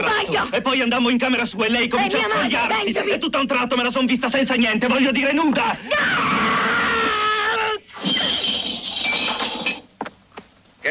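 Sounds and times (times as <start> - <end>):
speech: 0.3 - 6.5
woman screaming: 5.9 - 7.8
crash-like noise: 8.0 - 9.9.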